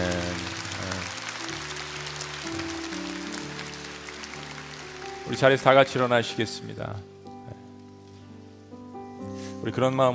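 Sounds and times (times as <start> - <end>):
audience applause: 0.0 - 6.1
speech: 5.3 - 7.1, 9.6 - 10.1.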